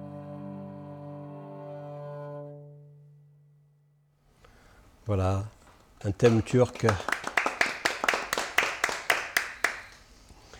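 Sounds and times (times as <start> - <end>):
speech: 5.1 - 7.2
small live audience clapping: 6.1 - 10.0.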